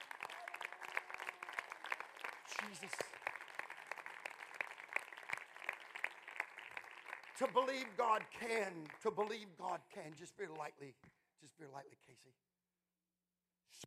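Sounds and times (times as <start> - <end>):
audience clapping hands: 0.0 - 10.8
speech: 2.6 - 3.2, 7.4 - 12.5.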